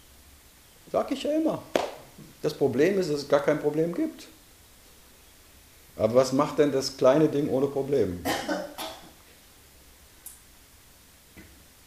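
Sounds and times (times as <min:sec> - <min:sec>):
speech: 0:00.9 - 0:04.4, 0:06.0 - 0:08.6
husky cough: 0:08.2 - 0:09.1.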